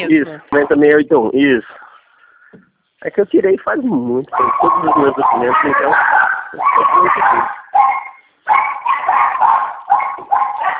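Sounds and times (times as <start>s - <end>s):
speech: 0.0s - 1.8s, 2.5s - 7.9s
dogs barking at a passing cat: 4.3s - 10.7s.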